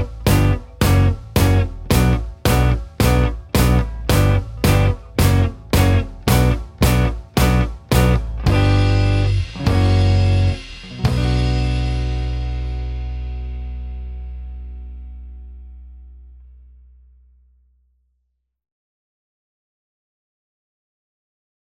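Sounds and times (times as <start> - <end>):
blues music: 0.0 - 16.9.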